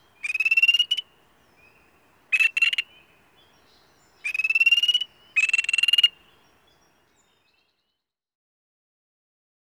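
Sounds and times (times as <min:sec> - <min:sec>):
spring peeper chorus calling: 0:00.0 - 0:06.7.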